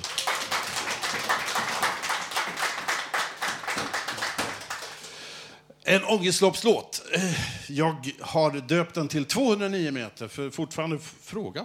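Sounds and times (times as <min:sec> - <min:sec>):
audience applause for musicians: 0:00.0 - 0:05.2
speech: 0:05.9 - 0:11.6.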